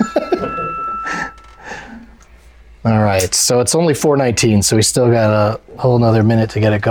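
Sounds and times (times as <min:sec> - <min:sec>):
phone alarm ringing: 0:00.0 - 0:01.9
speech: 0:02.8 - 0:06.8.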